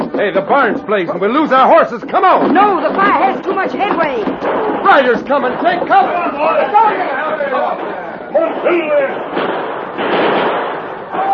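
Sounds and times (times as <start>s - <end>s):
gunfire: 0.0s - 11.3s
speech: 0.2s - 10.2s.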